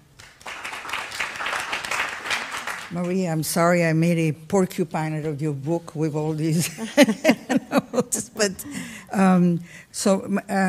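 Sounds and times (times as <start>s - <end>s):
audience applause welcoming guests at the Free Library: 0.0s - 3.2s
speech: 2.9s - 10.6s
laughter: 6.6s - 8.4s.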